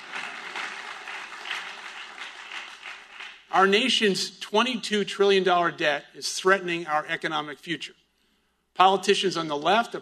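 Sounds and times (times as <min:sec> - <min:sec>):
audience clapping: 0:00.0 - 0:03.7
speech: 0:03.5 - 0:08.0, 0:08.8 - 0:10.0.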